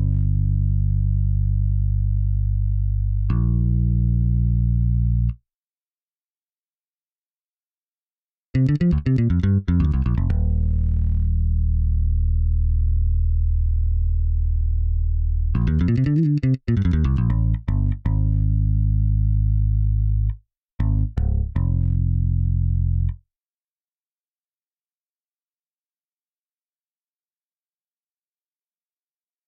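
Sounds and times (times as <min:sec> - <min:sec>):
bass: 0:00.0 - 0:05.4, 0:08.6 - 0:23.2.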